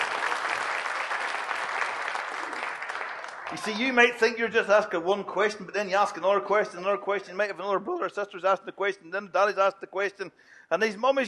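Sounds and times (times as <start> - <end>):
audience applause: 0.0 - 4.2
speech: 3.5 - 11.2.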